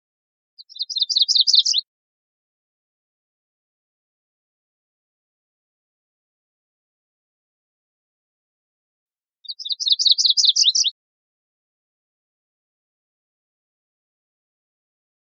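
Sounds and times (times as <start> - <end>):
MacGillivray's warbler song: 0.6 - 1.8, 9.4 - 10.9.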